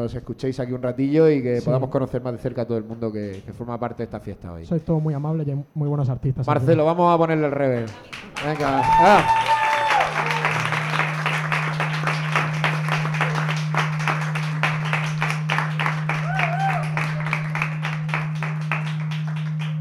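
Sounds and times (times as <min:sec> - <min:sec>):
speech: 0:00.0 - 0:09.5
audience applause: 0:07.8 - 0:19.7
brief voices and whoops: 0:08.5 - 0:10.9, 0:16.2 - 0:17.4
constant low hum: 0:09.3 - 0:19.7.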